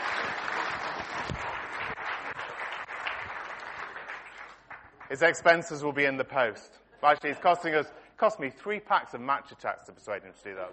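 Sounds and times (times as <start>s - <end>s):
audience clapping: 0.0s - 5.6s
speech: 5.1s - 10.7s.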